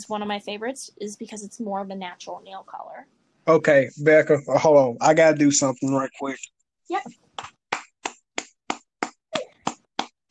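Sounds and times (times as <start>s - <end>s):
speech: 0.0s - 7.5s
hand claps: 7.4s - 10.3s.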